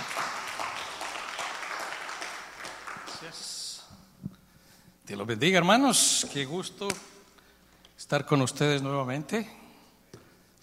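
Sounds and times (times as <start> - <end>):
church congregation clapping during a service: 0.0 - 3.6
speech: 3.2 - 3.6, 5.1 - 7.1, 8.1 - 9.6.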